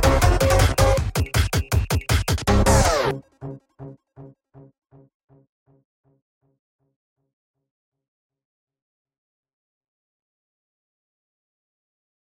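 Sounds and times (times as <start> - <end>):
instrumental music: 0.0 - 3.6.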